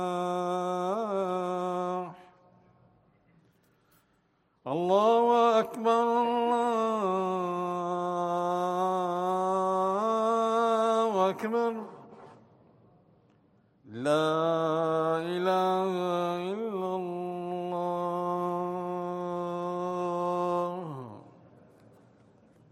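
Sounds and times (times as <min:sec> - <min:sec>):
call to prayer: 0:00.0 - 0:02.6, 0:04.6 - 0:12.4, 0:13.9 - 0:21.4.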